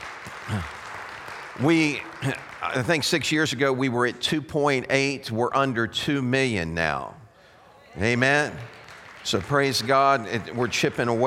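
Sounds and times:
audience hand clapping: 0.0s - 3.8s, 8.0s - 11.2s
speech: 0.5s - 0.8s, 1.6s - 7.2s, 8.0s - 11.2s.

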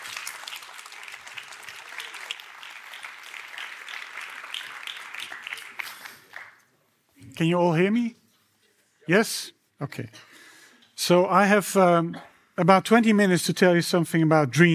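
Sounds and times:
audience applause: 0.0s - 6.6s
speech: 7.4s - 8.2s, 9.1s - 10.3s, 11.0s - 14.7s.

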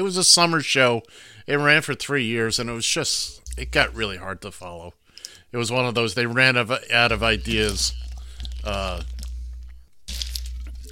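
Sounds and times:
speech: 0.0s - 8.0s, 8.6s - 9.2s
person drinking ice water: 7.1s - 10.9s.

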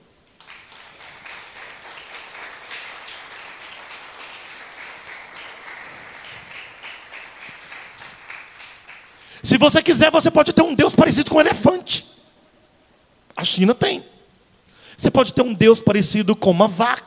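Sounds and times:
crowd clapping: 0.3s - 9.4s
speech: 9.4s - 12.1s, 13.4s - 14.2s, 15.0s - 17.0s.

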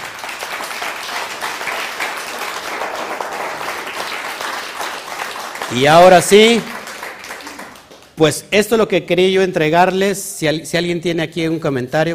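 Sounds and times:
crowd applause: 0.0s - 8.2s
speech: 5.7s - 6.7s, 8.2s - 12.1s.

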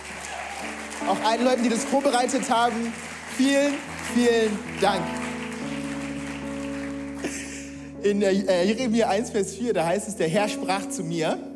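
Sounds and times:
audience applause: 0.0s - 7.7s
speech: 1.0s - 5.2s, 8.0s - 11.5s.

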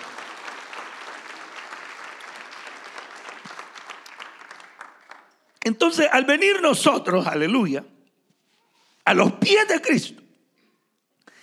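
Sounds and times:
audience applause: 0.0s - 5.4s
speech: 5.6s - 7.9s, 9.1s - 10.2s.

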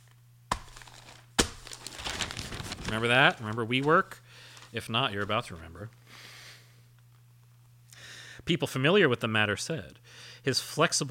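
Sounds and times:
pages being flipped: 0.0s - 5.6s
speech: 2.9s - 6.3s, 8.5s - 11.1s.

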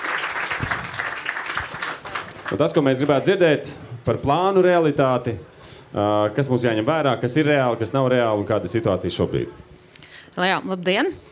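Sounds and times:
room full of people applauding: 0.0s - 3.2s
speech: 2.5s - 9.7s, 10.4s - 11.3s.

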